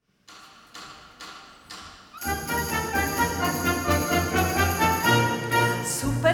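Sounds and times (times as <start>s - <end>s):
band playing a children's song: 2.2s - 6.2s.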